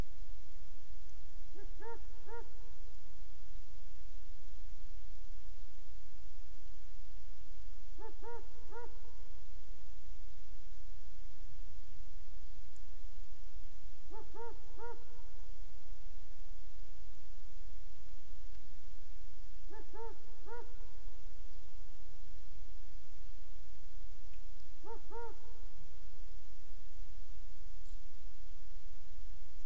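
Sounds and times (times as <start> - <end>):
quiet hiss: 0.0 - 29.6
owl hooting: 1.6 - 2.8, 8.0 - 9.2, 14.1 - 15.4, 19.7 - 21.0, 24.8 - 25.8.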